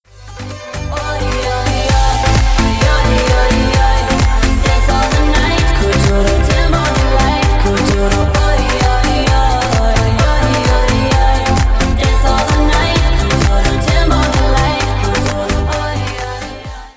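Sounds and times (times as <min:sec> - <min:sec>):
music: 0:00.0 - 0:16.9.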